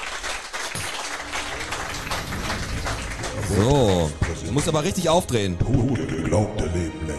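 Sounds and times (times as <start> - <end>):
small group applauding: 0.0 - 5.4
speech: 3.5 - 7.0.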